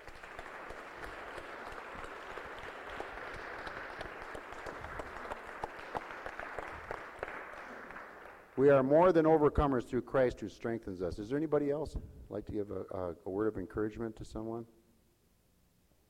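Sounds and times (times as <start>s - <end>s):
audience clapping: 0.0s - 9.0s
speech: 8.6s - 14.8s.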